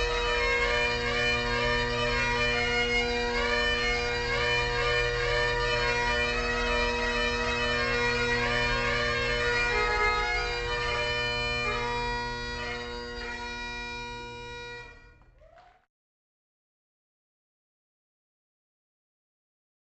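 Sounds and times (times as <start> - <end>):
bagpiper playing bagpipes: 0.0 - 15.3.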